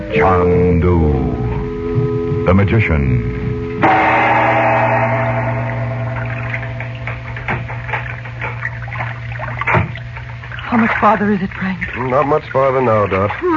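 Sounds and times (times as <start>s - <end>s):
low steady hum: 0.0s - 13.5s
speech: 0.1s - 1.4s, 2.4s - 4.0s, 10.7s - 13.5s
river water lapping and sloshing against a slowly moving sailboat: 3.6s - 13.5s.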